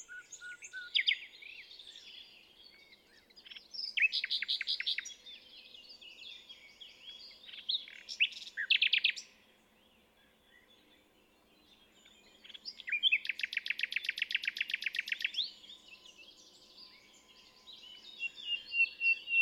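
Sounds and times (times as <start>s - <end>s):
common nightingale song: 0.0s - 19.3s.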